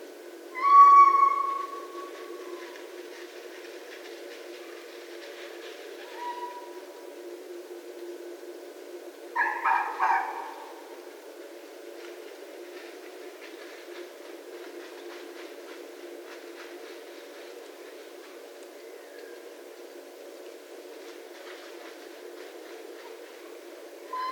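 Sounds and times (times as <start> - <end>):
red fox calling: 0.5 - 2.8, 6.0 - 6.8, 9.4 - 10.8, 24.0 - 24.3.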